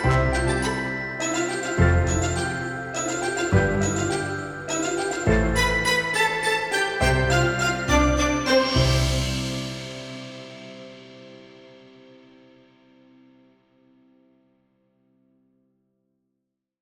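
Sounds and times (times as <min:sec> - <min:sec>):
pompous classical music: 0:00.0 - 0:10.7.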